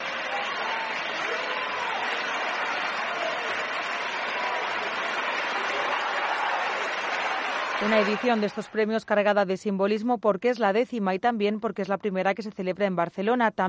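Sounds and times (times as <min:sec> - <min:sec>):
ovation applause at gala: 0:00.0 - 0:08.8
speech: 0:07.8 - 0:13.6.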